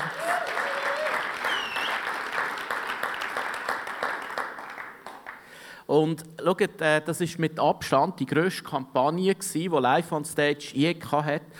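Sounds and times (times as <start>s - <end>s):
faint cheers and whistles: 0.0s - 2.3s
audience applause: 0.0s - 5.5s
speech: 5.9s - 11.5s.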